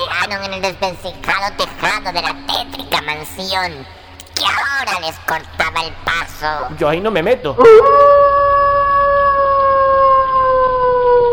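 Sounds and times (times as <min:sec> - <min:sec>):
speech: 0:00.3 - 0:08.3
howl: 0:07.6 - 0:11.3.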